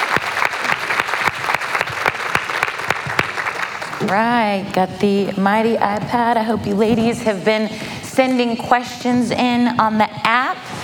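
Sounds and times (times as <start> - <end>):
audience applause: 0.0 - 4.2
speech: 4.0 - 10.6.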